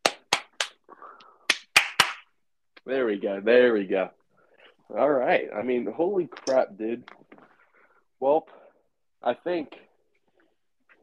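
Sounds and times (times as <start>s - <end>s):
hand claps: 0.0s - 2.4s
speech: 2.9s - 4.2s, 4.9s - 7.2s, 8.2s - 8.6s, 9.2s - 9.8s.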